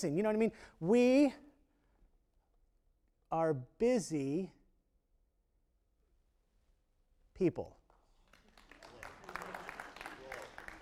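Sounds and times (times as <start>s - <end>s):
speech: 0.0s - 1.4s, 3.3s - 4.6s, 7.4s - 7.8s
audience clapping: 7.9s - 10.7s.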